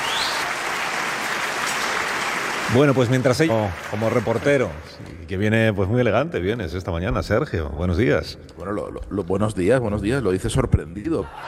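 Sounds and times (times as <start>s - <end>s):
dense applause for a team of scriptwriters: 0.0s - 5.0s
speech: 2.7s - 11.4s.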